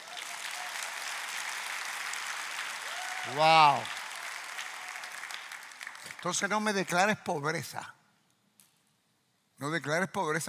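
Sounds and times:
audience applause: 0:00.0 - 0:06.7
speech: 0:03.2 - 0:04.0, 0:06.2 - 0:08.0, 0:09.6 - 0:10.4.

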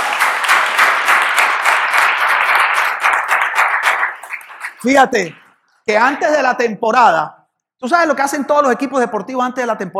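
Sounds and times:
audience applause: 0:00.0 - 0:04.9
speech: 0:04.8 - 0:09.9.

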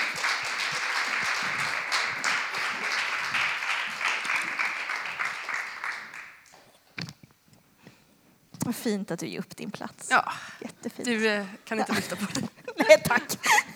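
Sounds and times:
crowd applause for a guest: 0:00.0 - 0:06.6
speech: 0:08.7 - 0:13.7
laughter: 0:11.7 - 0:13.7.

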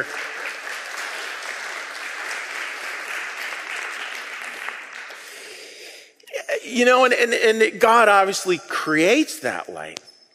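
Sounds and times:
speech: 0:00.0 - 0:00.2, 0:06.7 - 0:10.1
audience applause for children: 0:00.0 - 0:05.6.

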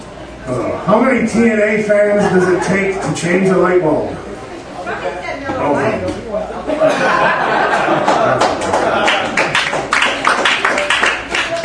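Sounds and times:
murmur of chatter: 0:00.0 - 0:11.6
speech: 0:00.5 - 0:04.3
people chuckling: 0:02.0 - 0:03.1, 0:06.5 - 0:09.6
crowd applauding: 0:07.6 - 0:11.6.

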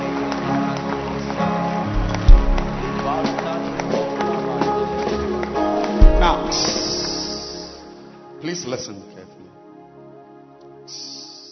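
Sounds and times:
audience clapping hands: 0:00.0 - 0:07.5
speech: 0:06.5 - 0:06.7, 0:08.6 - 0:09.1.

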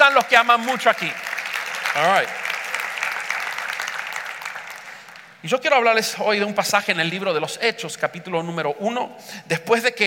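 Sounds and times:
audience applause: 0:00.0 - 0:05.4
speech: 0:00.2 - 0:01.3, 0:02.0 - 0:02.4, 0:05.4 - 0:10.0.

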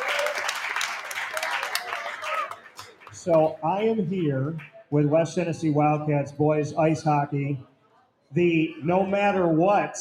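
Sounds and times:
audience applause: 0:00.0 - 0:04.7
speech: 0:03.2 - 0:07.7, 0:08.3 - 0:10.0.

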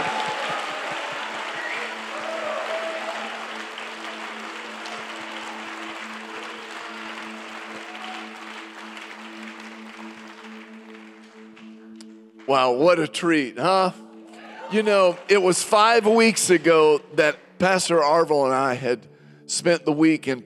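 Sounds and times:
audience shouting and clapping: 0:00.0 - 0:09.0
low sustained organ-like tones: 0:00.0 - 0:19.0
speech: 0:12.5 - 0:14.0, 0:14.7 - 0:20.4.

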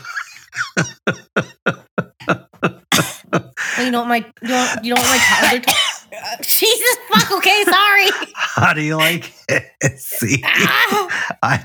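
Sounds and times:
laughter: 0:00.0 - 0:05.6, 0:06.2 - 0:11.6
speech: 0:00.8 - 0:01.3, 0:03.9 - 0:05.8, 0:06.6 - 0:11.6
person coughing into a microphone: 0:02.9 - 0:03.4, 0:04.8 - 0:06.3.

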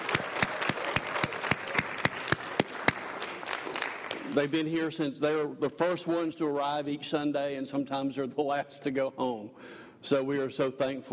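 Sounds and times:
audience applause: 0:00.0 - 0:04.4
speech: 0:04.4 - 0:11.1.

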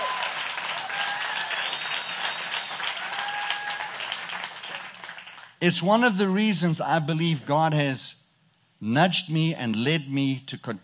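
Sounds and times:
crowd applauding: 0:00.0 - 0:05.6
faint tonal whistles: 0:01.5 - 0:03.0
speech: 0:05.6 - 0:08.2, 0:08.8 - 0:10.8.

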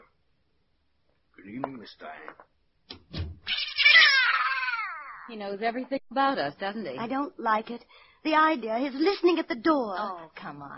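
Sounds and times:
speech: 0:01.8 - 0:02.6, 0:05.3 - 0:10.7
cat meowing: 0:03.5 - 0:05.3.

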